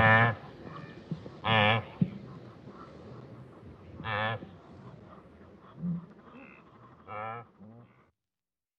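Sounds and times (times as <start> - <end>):
wildebeest grunts: 1.4 - 8.1.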